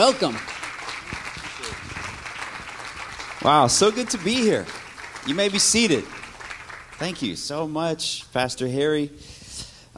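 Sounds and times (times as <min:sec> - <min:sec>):
speech: 0:00.0 - 0:00.5, 0:03.4 - 0:06.2, 0:07.0 - 0:09.4
crowd clapping for a guest speaker in a large room: 0:00.0 - 0:07.8.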